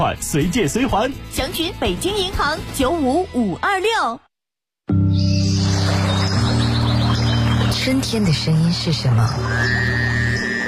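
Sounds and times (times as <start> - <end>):
speech: 0.0 - 4.3, 7.9 - 9.9
birds chirping: 5.1 - 10.6.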